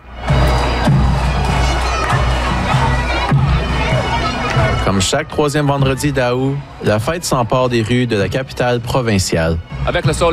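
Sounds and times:
large parade crowd cheering: 0.0 - 10.3
children shouting at a parade: 0.1 - 8.0
speech: 4.9 - 10.3.

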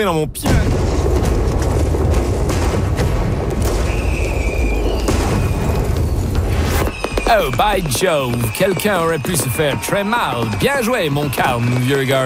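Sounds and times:
speech: 0.0 - 1.0, 7.3 - 12.2
gunpowder barrels exploding: 0.4 - 7.9
crackling noise: 0.5 - 12.2.

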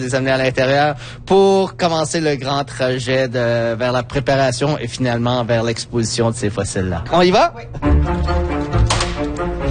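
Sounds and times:
speech: 0.0 - 8.2
magnetic security door unlatching: 8.2 - 9.6.

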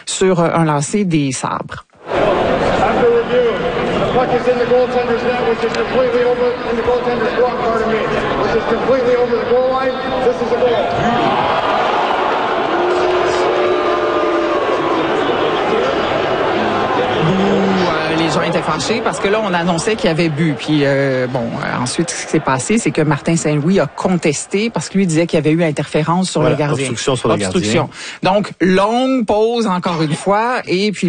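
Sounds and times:
speech: 0.2 - 2.3, 3.0 - 11.8, 17.3 - 31.0
hockey crowd murmuring and shouting outside arena: 2.0 - 25.5
cheers: 10.2 - 24.9.

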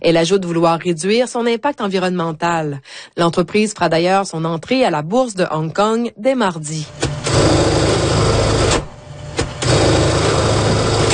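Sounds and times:
speech: 0.0 - 7.7
sewing machine humming: 6.9 - 11.1.

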